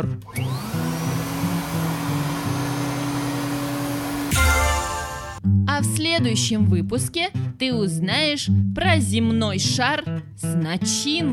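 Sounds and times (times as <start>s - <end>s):
speech: 0.0s - 0.4s, 6.2s - 11.3s
vacuum cleaner running: 0.3s - 5.4s.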